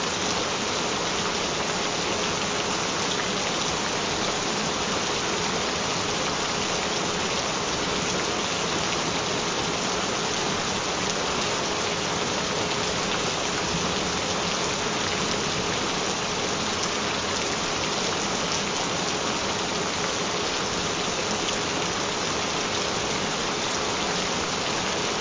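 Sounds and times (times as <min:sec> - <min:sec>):
gentle rain: 0:00.0 - 0:25.2.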